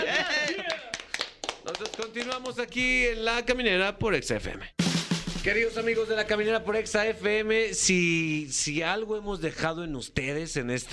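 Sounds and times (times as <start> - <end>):
person laughing and talking: 0.0 - 0.8
scattered hand claps: 0.4 - 2.6
speech: 1.8 - 4.8, 5.4 - 10.9.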